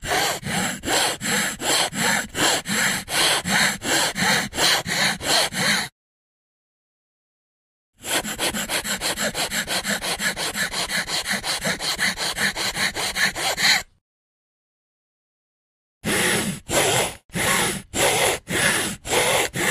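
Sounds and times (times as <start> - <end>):
hacksaw: 0.0 - 5.9, 8.0 - 14.0, 16.0 - 19.6.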